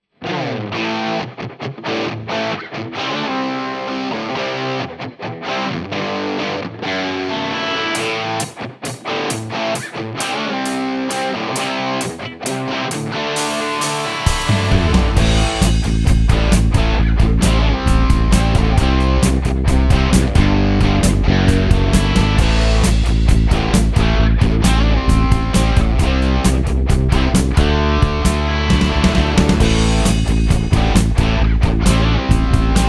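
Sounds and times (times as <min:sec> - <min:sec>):
classic rock music: 0:00.3 - 0:32.8.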